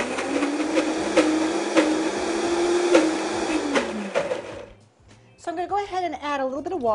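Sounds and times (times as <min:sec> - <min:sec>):
blender blending soup: 0:00.0 - 0:04.7
speech: 0:05.6 - 0:06.9.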